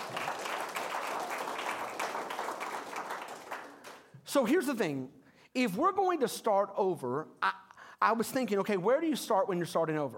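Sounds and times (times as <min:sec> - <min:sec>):
audience hand clapping: 0:00.0 - 0:04.2
speech: 0:04.4 - 0:10.1.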